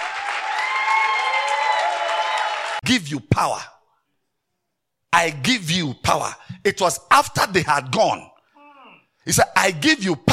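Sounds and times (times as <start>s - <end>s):
church congregation clapping hands: 0.0s - 2.8s
speech: 2.9s - 3.8s, 5.2s - 8.3s, 9.2s - 10.3s.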